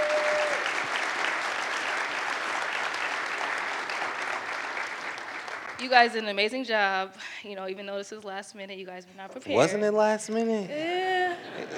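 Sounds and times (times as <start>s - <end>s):
audience applause for guests: 0.0s - 6.0s
speech: 5.8s - 11.7s.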